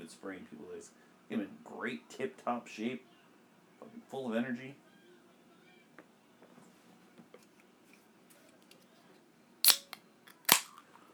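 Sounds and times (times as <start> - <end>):
speech: 0.1 - 3.1, 3.8 - 4.8
can of Spear beer popping open: 9.6 - 10.9.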